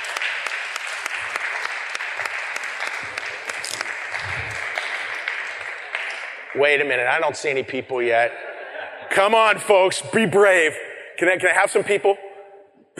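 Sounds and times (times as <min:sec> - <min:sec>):
audience applause: 0:00.0 - 0:06.8
speech: 0:06.6 - 0:08.4, 0:09.2 - 0:12.2
laughter: 0:08.2 - 0:09.4.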